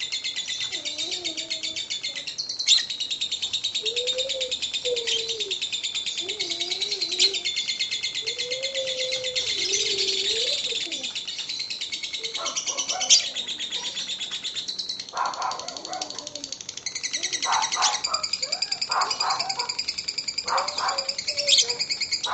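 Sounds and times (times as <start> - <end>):
lovebird singing a shrill rattling ngekek song: 0.0 - 3.9, 4.5 - 22.3.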